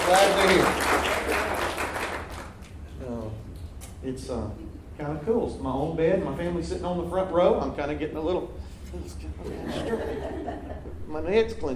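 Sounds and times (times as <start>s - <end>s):
audience clapping at a church service: 0.0s - 2.8s
speech: 0.1s - 1.5s, 4.0s - 11.7s
laughter: 9.4s - 11.0s.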